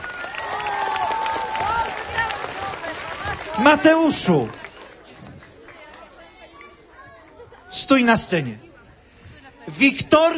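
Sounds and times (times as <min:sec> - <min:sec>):
applause: 0:00.0 - 0:06.7
speech: 0:03.6 - 0:04.6, 0:07.9 - 0:08.7, 0:09.8 - 0:10.3.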